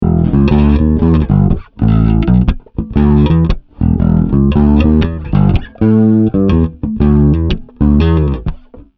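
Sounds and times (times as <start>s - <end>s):
Boss GT-10B Ampeg SVT bass amp tone: 0.0s - 8.9s.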